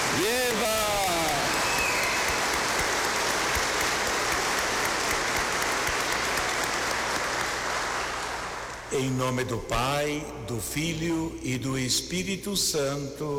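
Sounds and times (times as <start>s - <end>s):
audience applause: 0.0s - 8.9s
speech: 0.2s - 0.8s, 9.0s - 13.3s.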